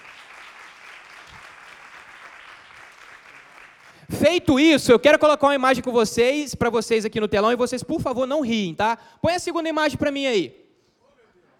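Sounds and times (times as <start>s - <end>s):
audience applause: 0.0s - 4.0s
speech: 4.1s - 10.6s.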